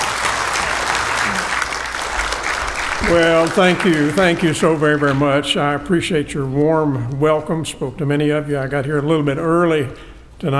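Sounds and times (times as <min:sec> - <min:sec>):
audience applause welcoming a preacher: 0:00.0 - 0:05.5
speech: 0:03.0 - 0:10.5.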